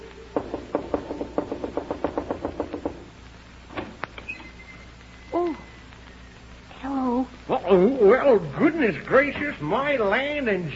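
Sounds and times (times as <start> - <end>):
knocking on a door: 0.4 - 3.1
speech: 7.7 - 10.7.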